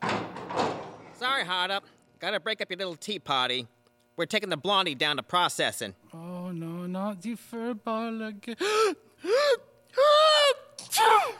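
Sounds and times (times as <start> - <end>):
speech: 1.4 - 10.1
person sneezing: 10.4 - 11.3.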